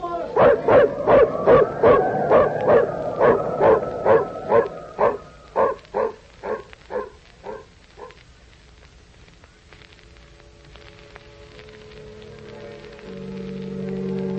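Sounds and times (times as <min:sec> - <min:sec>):
dog barking: 0:00.4 - 0:08.2.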